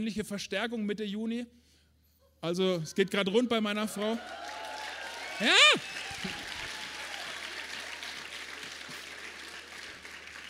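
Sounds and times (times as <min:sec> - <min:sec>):
speech: 0:00.0 - 0:01.7, 0:02.4 - 0:04.6, 0:05.4 - 0:06.4
audience applause: 0:04.0 - 0:10.4.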